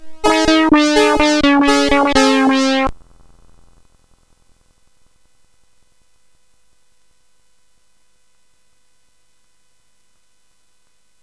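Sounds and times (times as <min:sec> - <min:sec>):
synth sweep on CSG8580R5 chip: 0:00.0 - 0:02.9.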